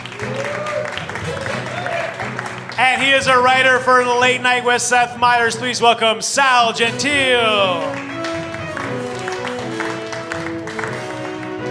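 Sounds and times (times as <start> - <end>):
audience applause at a live show: 0.0 - 4.2, 6.8 - 11.6
speech: 2.8 - 8.1.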